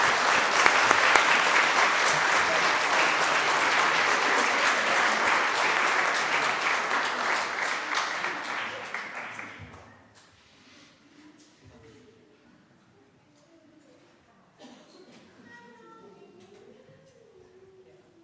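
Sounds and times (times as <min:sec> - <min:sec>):
audience applause: 0:00.0 - 0:09.7.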